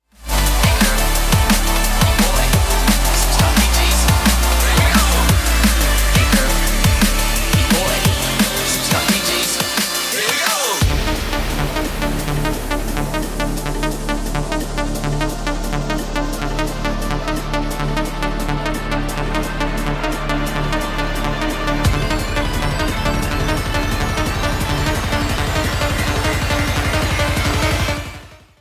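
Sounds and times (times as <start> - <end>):
bassline: 0.0 - 28.5
drums: 0.1 - 28.4.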